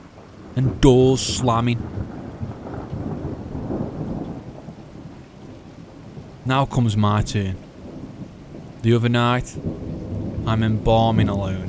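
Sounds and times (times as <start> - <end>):
rain: 0.0 - 11.6
thunder: 0.4 - 6.4, 7.8 - 8.8, 9.5 - 11.6
speech: 0.6 - 2.2, 6.5 - 7.6, 8.8 - 9.8, 10.4 - 11.6.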